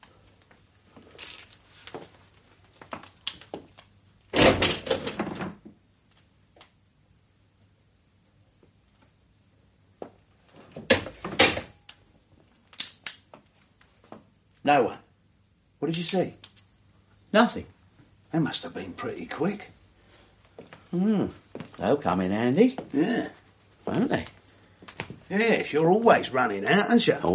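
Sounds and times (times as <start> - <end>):
loud rattling thump of a door: 4.4 - 5.6
speech: 14.7 - 15.0, 15.8 - 16.5, 17.3 - 17.7, 18.3 - 19.8, 20.9 - 24.4, 25.3 - 27.3.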